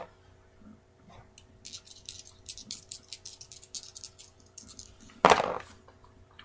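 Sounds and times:
dice rattling and landing: 1.4s - 5.7s.

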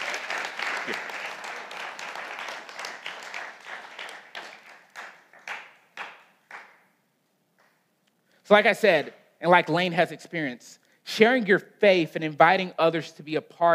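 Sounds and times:
audience applause: 0.0s - 6.7s
speech: 0.9s - 1.1s, 8.5s - 13.7s.

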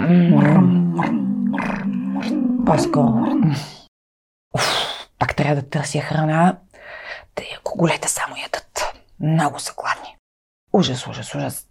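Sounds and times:
person imitating a creature's grumbling: 0.0s - 3.9s
speech: 2.7s - 3.8s, 4.5s - 11.6s.

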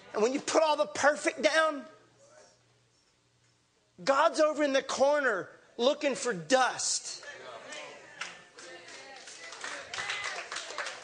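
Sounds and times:
speech: 0.1s - 2.0s, 4.0s - 7.3s
audience clapping: 7.7s - 11.0s.

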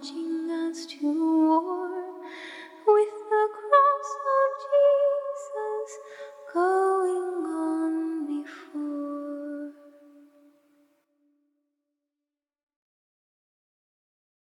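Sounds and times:
a cappella hymn singing: 0.0s - 9.8s.

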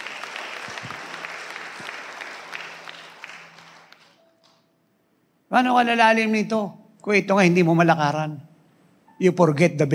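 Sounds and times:
audience applause: 0.0s - 4.2s
speech: 5.5s - 8.5s, 9.2s - 9.9s.

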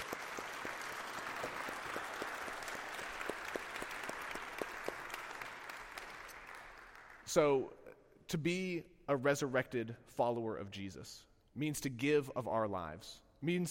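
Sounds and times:
audience clapping: 0.0s - 7.4s
speech: 7.3s - 13.6s.

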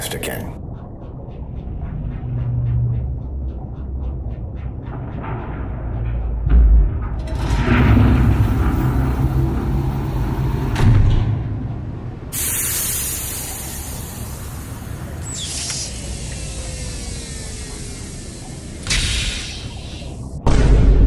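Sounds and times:
low droning rumble of sci-fi pod 618: 0.0s - 21.0s
hiss of escaping air from sci-fi pod 618 opening: 12.4s - 20.2s.

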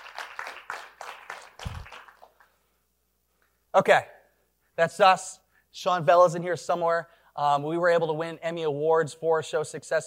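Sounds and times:
small group clapping: 0.0s - 2.6s
speech: 3.7s - 4.2s, 4.8s - 10.0s.

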